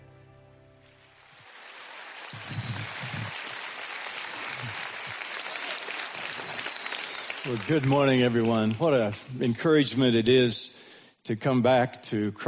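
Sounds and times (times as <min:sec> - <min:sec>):
round of applause: 0:00.8 - 0:10.0
speech: 0:07.4 - 0:12.4.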